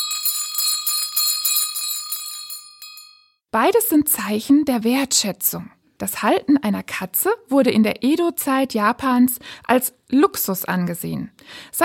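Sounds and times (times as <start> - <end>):
small gold bells jingling on a collar: 0.0 - 3.4
speech: 3.5 - 11.8.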